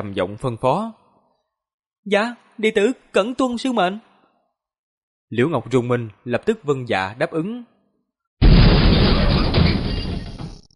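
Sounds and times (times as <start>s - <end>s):
speech: 0.0s - 1.0s, 2.0s - 4.1s, 5.3s - 7.7s
heavy stone door rumbling open: 8.4s - 10.7s.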